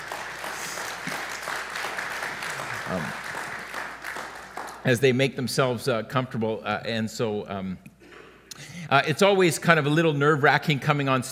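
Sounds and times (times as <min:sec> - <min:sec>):
audience applause: 0:00.0 - 0:04.9
speech: 0:02.9 - 0:03.2, 0:04.8 - 0:07.9, 0:08.9 - 0:11.3.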